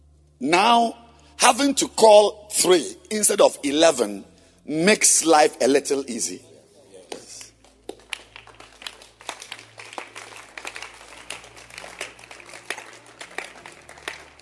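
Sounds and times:
speech: 0:00.4 - 0:06.5
hand clap: 0:07.0 - 0:14.4.

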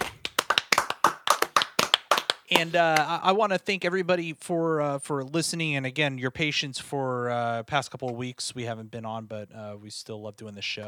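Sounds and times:
hosts clapping: 0:00.0 - 0:03.3
speech: 0:02.5 - 0:10.8.

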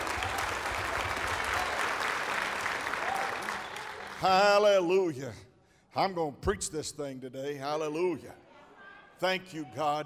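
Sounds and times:
audience clapping hands: 0:00.0 - 0:04.4
speech: 0:04.2 - 0:08.4, 0:09.2 - 0:10.0.

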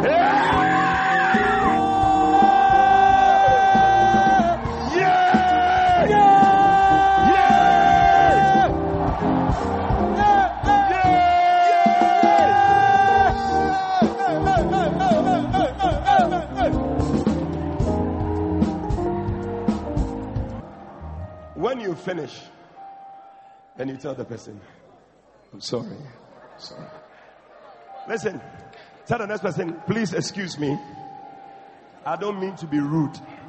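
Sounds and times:
crowd shouting, screaming and whooping: 0:00.0 - 0:21.6
speech: 0:24.0 - 0:24.8, 0:25.6 - 0:27.0, 0:28.1 - 0:31.0, 0:32.0 - 0:33.3.

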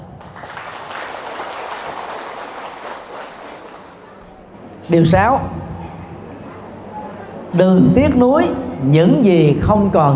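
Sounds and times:
audience applause: 0:00.0 - 0:04.2
speech: 0:04.9 - 0:05.7, 0:07.6 - 0:10.1.

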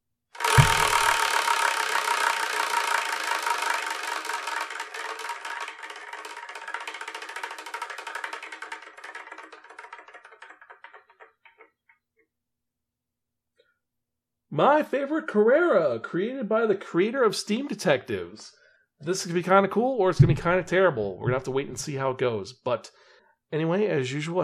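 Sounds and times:
prize wheel spinning: 0:00.4 - 0:11.3
speech: 0:14.6 - 0:24.4.

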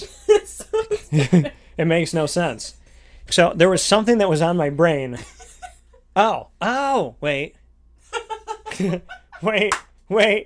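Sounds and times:
voiced, laughing vocal sounds: 0:00.0 - 0:01.6, 0:08.1 - 0:09.8
speech: 0:01.1 - 0:05.4, 0:06.2 - 0:07.6, 0:08.8 - 0:10.4
single sharp hand clap: 0:09.6 - 0:09.9.

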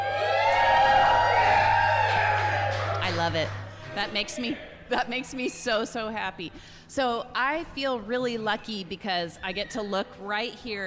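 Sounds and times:
live podcast audience cheering and whooping: 0:00.0 - 0:03.8
speech: 0:03.3 - 0:10.8.

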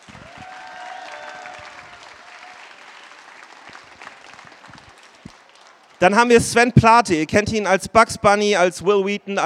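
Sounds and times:
audience applause: 0:00.0 - 0:06.0
speech: 0:06.0 - 0:09.4.

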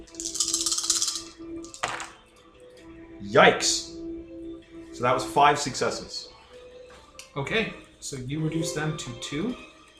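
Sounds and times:
dice rattling: 0:00.0 - 0:02.2
speech: 0:03.2 - 0:03.9, 0:05.0 - 0:06.3, 0:07.4 - 0:09.7.

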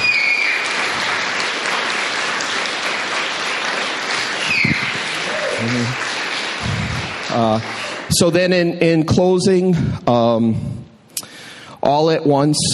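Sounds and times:
audience applause: 0:00.0 - 0:08.2
speech: 0:05.6 - 0:06.0, 0:07.4 - 0:10.8, 0:11.9 - 0:12.7.

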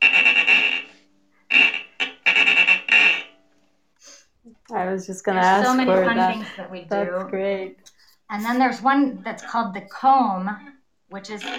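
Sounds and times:
chicharra friction instrument imitating a cicada: 0:00.0 - 0:03.4
speech: 0:04.8 - 0:11.5.

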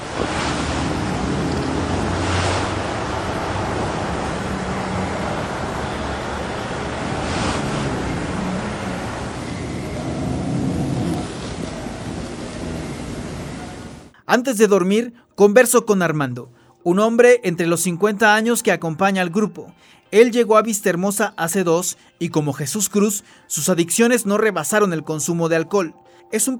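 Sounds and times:
night-time city street traffic: 0:00.0 - 0:14.1
cars passing: 0:00.0 - 0:14.2
speech: 0:14.3 - 0:26.5.

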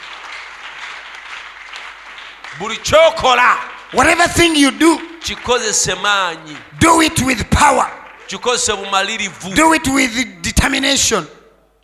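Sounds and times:
audience clapping: 0:00.0 - 0:10.1
speech: 0:02.6 - 0:11.4.

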